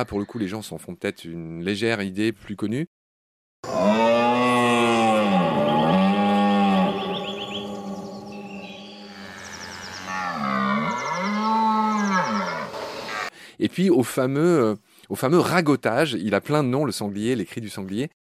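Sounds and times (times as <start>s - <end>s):
speech: 0.0s - 3.0s, 13.6s - 18.2s
red deer stag bellowing during rut: 3.7s - 8.3s, 9.1s - 13.3s.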